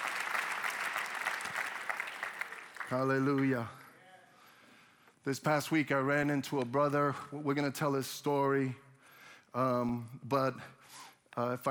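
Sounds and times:
audience applause: 0.0 - 3.8
speech: 2.9 - 3.8, 5.2 - 8.8, 9.5 - 11.7.

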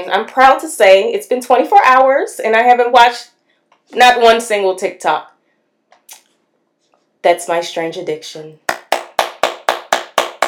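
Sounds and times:
speech: 0.0 - 3.3, 3.9 - 5.3, 7.2 - 8.6
hand clapping: 8.7 - 10.4.

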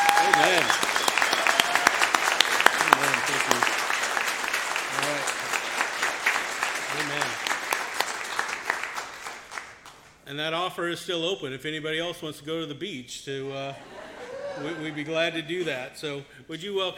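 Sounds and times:
laughter: 0.0 - 1.8, 2.7 - 3.8, 6.9 - 7.4, 13.7 - 15.8
audience round of applause: 0.0 - 10.0
speech: 10.4 - 13.9, 14.6 - 16.9.

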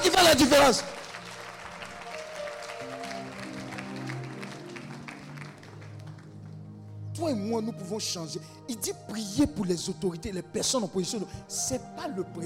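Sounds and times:
congregation applauding during a church worship service: 0.0 - 7.0
speech: 0.2 - 1.0, 7.2 - 12.4.

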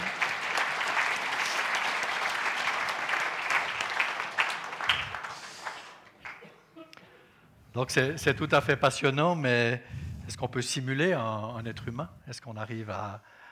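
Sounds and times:
audience applause: 0.0 - 6.4
speech: 7.8 - 13.4.

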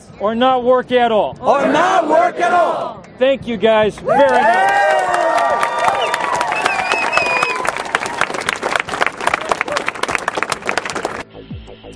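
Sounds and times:
speech: 0.2 - 5.0
voices and whistle-like cheers: 4.0 - 8.3
crowd applauding at a protest site: 4.1 - 11.3.

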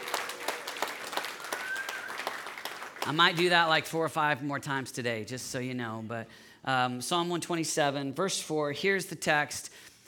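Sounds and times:
audience applause: 0.0 - 3.2
speech: 3.1 - 9.9.

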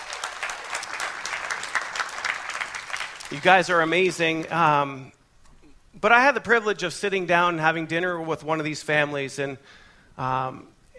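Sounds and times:
audience round of applause: 0.0 - 4.7
speech: 3.3 - 5.2, 6.0 - 10.7.

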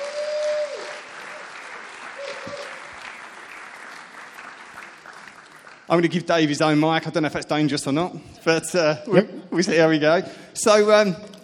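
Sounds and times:
audience round of applause: 0.0 - 6.6
speech: 5.9 - 11.4.

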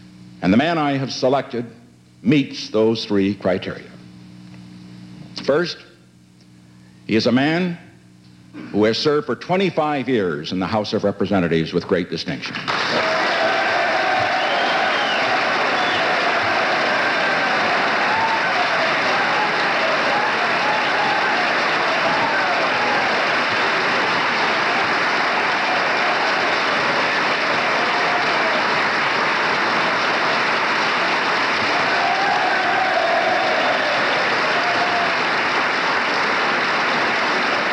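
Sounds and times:
speech: 0.4 - 3.9, 5.4 - 5.9, 7.1 - 7.8, 8.5 - 13.1
legislators giving a standing ovation: 12.5 - 37.7.

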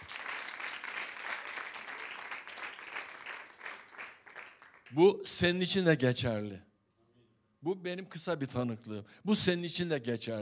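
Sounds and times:
audience applause: 0.0 - 4.9
speech: 4.9 - 6.7, 7.6 - 10.4.

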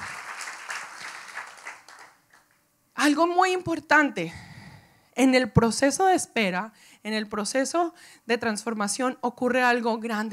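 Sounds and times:
audience applause: 0.0 - 2.5
speech: 3.1 - 4.4, 5.2 - 10.3.

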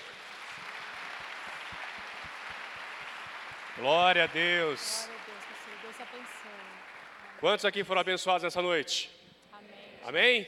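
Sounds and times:
audience clapping: 0.0 - 8.1
speech: 3.8 - 6.8, 7.4 - 9.2, 10.0 - 10.4.

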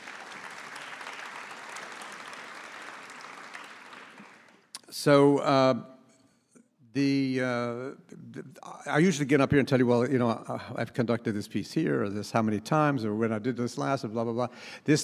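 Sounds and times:
audience applause: 0.0 - 4.7
speech: 5.0 - 5.9, 6.9 - 15.0.

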